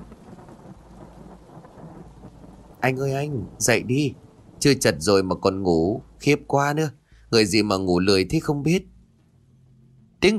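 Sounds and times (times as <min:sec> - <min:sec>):
thunder: 0:00.0 - 0:06.5
rain: 0:00.0 - 0:10.3
speech: 0:02.8 - 0:08.9.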